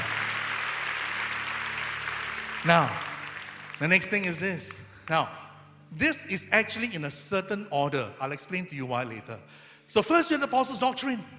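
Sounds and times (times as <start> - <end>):
audience applause: 0.0 - 4.4
speech: 2.6 - 3.1, 3.8 - 11.3.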